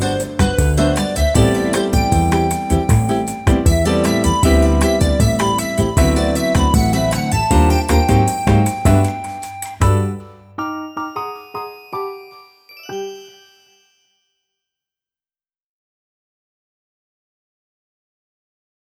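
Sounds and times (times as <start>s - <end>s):
afternoon bossa nova music: 0.0s - 12.4s.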